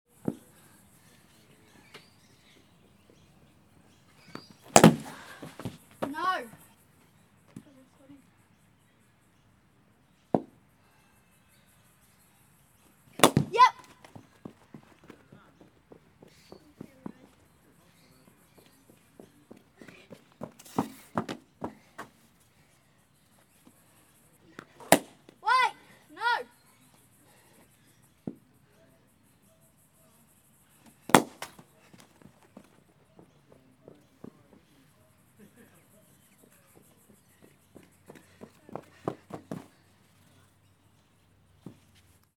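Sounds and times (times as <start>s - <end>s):
cricket match sounds: 0.1s - 42.3s.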